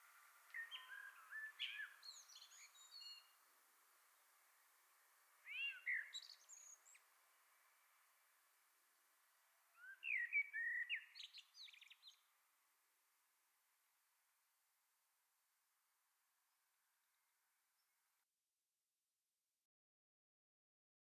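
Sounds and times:
faint common blackbird singing: 0.0s - 3.4s, 5.4s - 8.0s, 9.7s - 12.4s
background hiss: 0.0s - 13.4s.

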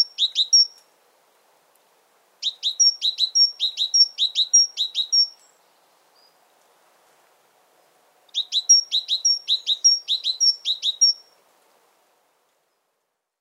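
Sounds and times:
great tit singing: 0.0s - 0.8s, 2.4s - 5.6s, 8.3s - 11.2s.

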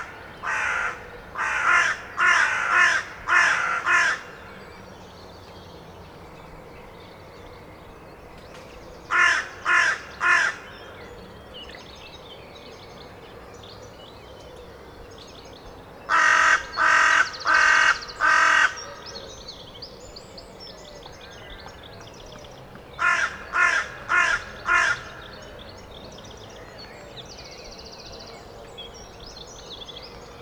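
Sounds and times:
carrion crow cawing: 0.4s - 4.3s, 9.1s - 10.7s, 16.1s - 18.8s, 23.0s - 25.3s.

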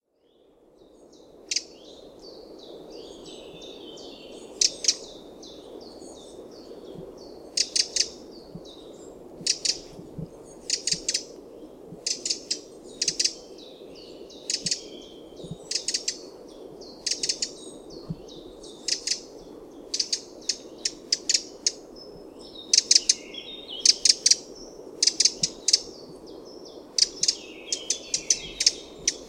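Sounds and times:
low background hum: 0.3s - 29.2s
Eurasian wren calls: 3.1s - 5.2s, 6.8s - 11.4s, 12.0s - 13.4s, 14.0s - 16.2s, 16.9s - 19.3s, 19.9s - 21.8s, 22.4s - 26.2s, 26.9s - 29.2s.

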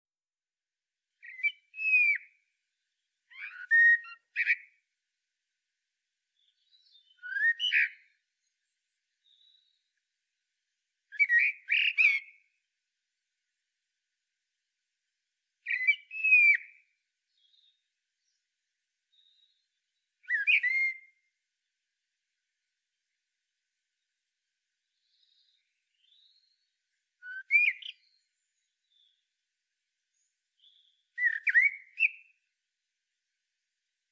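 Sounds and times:
common blackbird singing: 1.2s - 2.3s, 3.3s - 4.7s, 6.4s - 9.8s, 11.2s - 12.4s, 15.6s - 16.8s, 19.1s - 21.1s, 25.0s - 26.6s, 27.2s - 29.2s, 30.2s - 32.3s.

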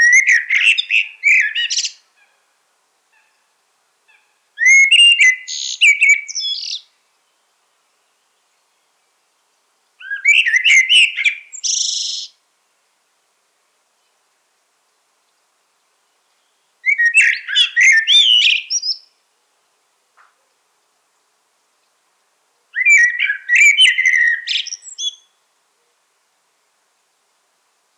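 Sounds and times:
common blackbird whistled song: 0.0s - 2.0s, 4.1s - 6.9s, 10.0s - 12.4s, 16.4s - 19.1s, 22.8s - 25.4s.

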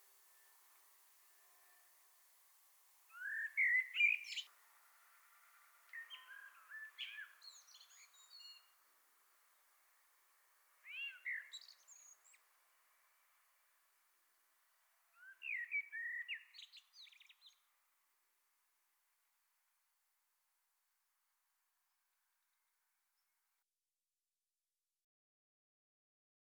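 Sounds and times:
common blackbird singing: 3.1s - 4.5s, 5.9s - 8.7s, 10.8s - 12.4s, 15.2s - 17.6s.

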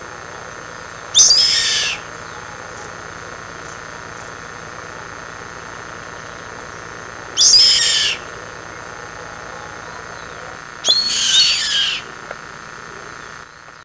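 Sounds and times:
faint hum: 0.0s - 13.8s
bird giving rasping screeches: 1.1s - 2.6s, 7.4s - 8.3s, 9.5s - 12.1s.

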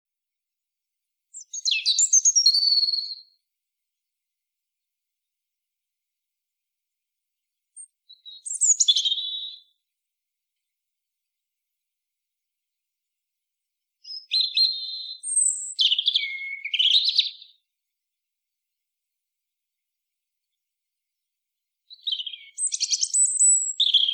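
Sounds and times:
European robin warbling song: 1.4s - 3.3s, 8.1s - 9.7s, 14.0s - 17.5s, 21.9s - 24.1s.

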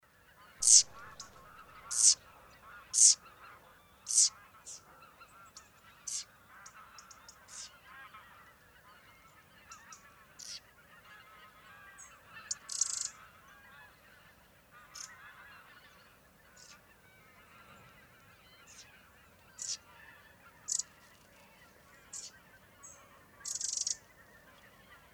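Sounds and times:
faint bird sounds: 0.1s - 25.1s
Eurasian wren ticking calls: 0.6s - 3.2s, 4.1s - 4.8s, 19.6s - 19.8s, 20.7s - 21.0s, 23.4s - 24.1s.

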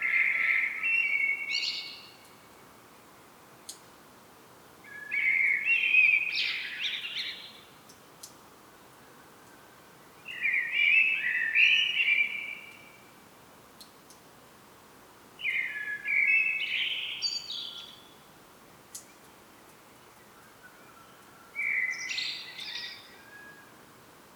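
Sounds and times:
common blackbird song: 0.0s - 2.3s, 4.9s - 8.3s, 9.0s - 13.0s, 15.4s - 18.3s, 18.9s - 23.8s.

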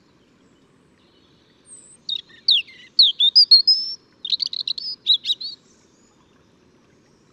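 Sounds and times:
European robin song: 1.0s - 5.7s.

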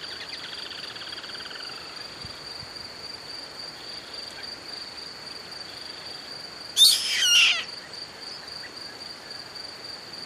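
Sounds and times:
high insect-like tone: 0.0s - 10.2s
bird harsh buzzy call: 6.8s - 7.7s.

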